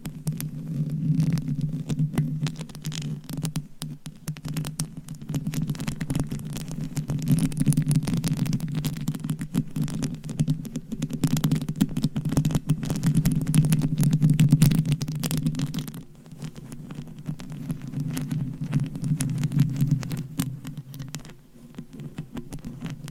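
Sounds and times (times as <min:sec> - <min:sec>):
scratching on a microphone with a homemade cover: 0:00.0 - 0:23.0.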